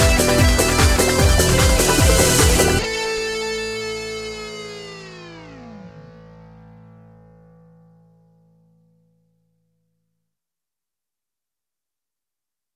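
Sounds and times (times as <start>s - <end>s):
lead guitar: 0.0s - 9.1s.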